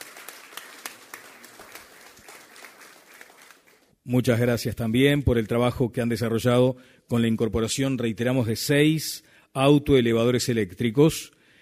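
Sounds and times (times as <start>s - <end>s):
audience applause: 0.0s - 3.9s
speech: 4.0s - 11.4s.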